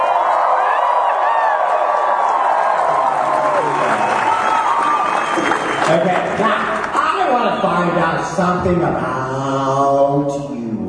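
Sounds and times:
crowd cheering with whoops and shouts: 0:00.0 - 0:06.6
crowd applauding: 0:00.0 - 0:08.0
speech: 0:08.2 - 0:10.8.

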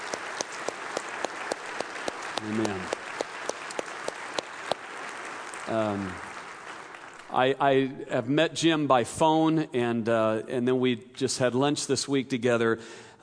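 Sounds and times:
audience applause: 0:00.0 - 0:07.6
speech: 0:02.4 - 0:03.0, 0:05.7 - 0:06.3, 0:07.3 - 0:13.1.

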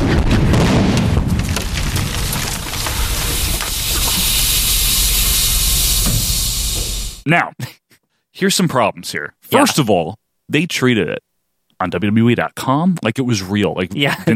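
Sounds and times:
limousine explosion: 0:00.0 - 0:07.2
speech: 0:07.3 - 0:07.8, 0:08.4 - 0:14.3.

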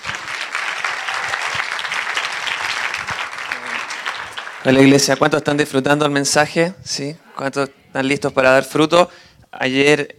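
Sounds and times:
audience applause: 0:00.0 - 0:05.4
speech: 0:04.6 - 0:10.1.

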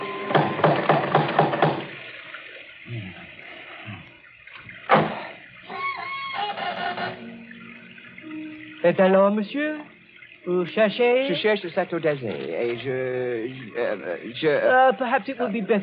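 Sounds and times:
metallic knocks from a door knocker: 0:00.2 - 0:02.0
high creaking sound: 0:05.1 - 0:08.9
speech: 0:08.8 - 0:15.8.

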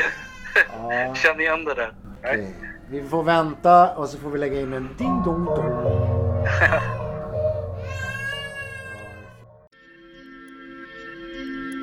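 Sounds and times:
speech: 0:00.0 - 0:07.0
child screaming: 0:07.8 - 0:09.4.

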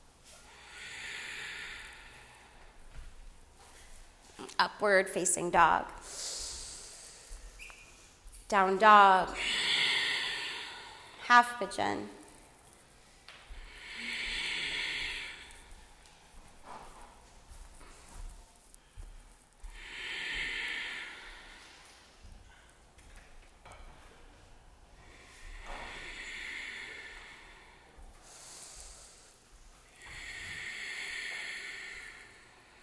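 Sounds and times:
ujjayi breathing through the nose: 0:00.3 - 0:03.1, 0:06.0 - 0:08.2, 0:09.4 - 0:11.2, 0:13.5 - 0:17.2, 0:18.8 - 0:22.8, 0:25.0 - 0:32.8
speech: 0:04.6 - 0:06.3, 0:08.5 - 0:09.6, 0:11.3 - 0:12.2.

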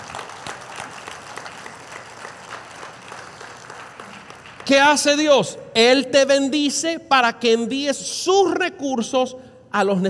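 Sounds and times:
audience applause: 0:00.0 - 0:04.7
speech: 0:04.7 - 0:10.0.

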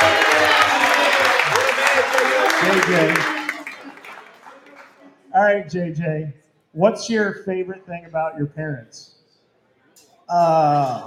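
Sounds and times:
audience clapping: 0:00.0 - 0:05.3
speech: 0:02.9 - 0:03.3, 0:05.4 - 0:09.2, 0:10.3 - 0:11.0.

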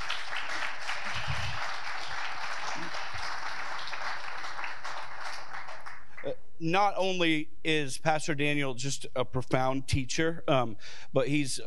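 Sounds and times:
crowd applauding: 0:00.0 - 0:06.3
speech: 0:06.6 - 0:11.6.

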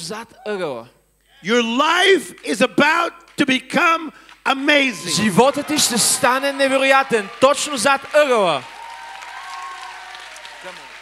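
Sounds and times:
speech: 0:00.0 - 0:08.8
audience applause: 0:04.5 - 0:11.0.

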